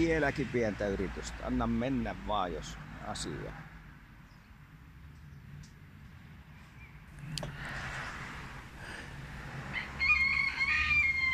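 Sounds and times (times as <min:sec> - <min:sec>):
speech: 0:00.0 - 0:03.7
rooster crowing: 0:09.6 - 0:11.3.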